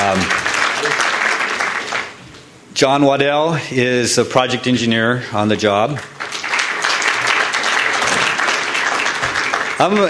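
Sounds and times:
crowd applause: 0.0 - 2.2, 6.1 - 10.0
speech: 2.8 - 6.2, 9.8 - 10.0.

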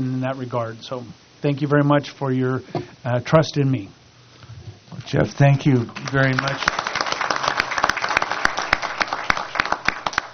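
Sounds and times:
speech: 0.0 - 4.0, 4.9 - 6.8
applause: 5.9 - 10.3.

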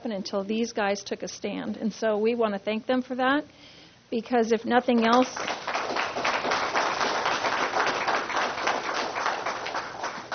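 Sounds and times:
speech: 0.0 - 5.7
audience clapping: 5.0 - 10.3.

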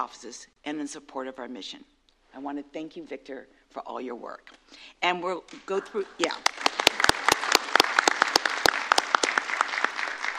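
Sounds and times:
speech: 0.0 - 6.6
scattered clapping from a small audience at an award recognition ceremony: 6.2 - 10.3.

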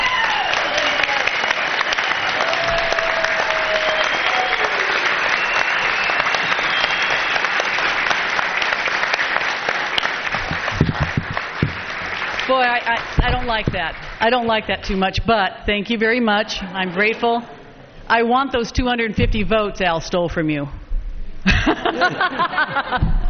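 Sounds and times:
faint whoops and cheers: 0.0 - 7.7
large crowd standing ovation applause: 0.0 - 14.5
speech: 13.5 - 20.8, 21.4 - 23.1
laughter: 21.4 - 23.2.

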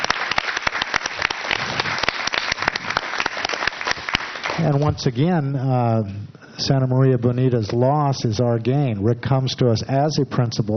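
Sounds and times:
school board meeting audience clapping to welcome a new elementary school principal: 0.0 - 4.9
speech: 4.6 - 10.7.

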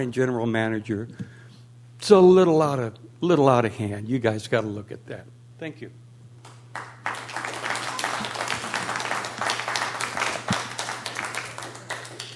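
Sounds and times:
speech: 0.0 - 1.4, 2.0 - 6.0
low electrical hum: 0.0 - 12.3
audience applause at a public meeting: 6.7 - 12.3.

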